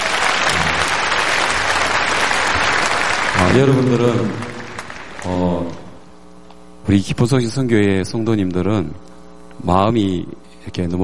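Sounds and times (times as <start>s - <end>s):
audience applause: 0.0s - 5.9s
speech: 3.5s - 4.4s, 5.2s - 5.8s, 6.9s - 11.0s.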